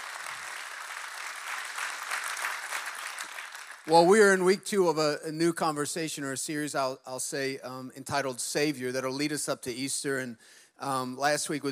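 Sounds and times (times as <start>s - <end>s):
audience clapping: 0.0s - 4.2s
speech: 3.9s - 11.7s.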